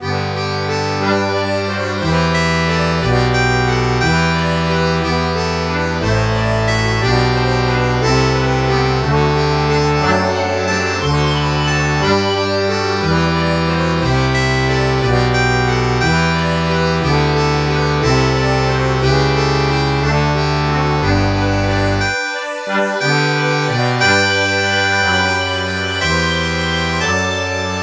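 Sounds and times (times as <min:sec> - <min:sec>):
bandoneon: 0:00.0 - 0:27.8.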